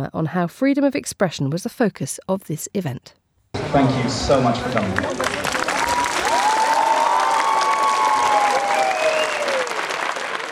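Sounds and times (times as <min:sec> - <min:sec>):
speech: 0:00.0 - 0:05.2
excited crowd applauding at a literary festival: 0:03.6 - 0:10.5
people whooping and cheering: 0:05.0 - 0:10.5.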